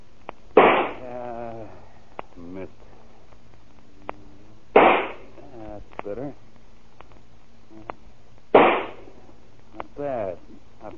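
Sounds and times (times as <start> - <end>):
rifle shot fired in a yard: 0.6 - 1.0, 4.8 - 5.3, 8.5 - 9.0.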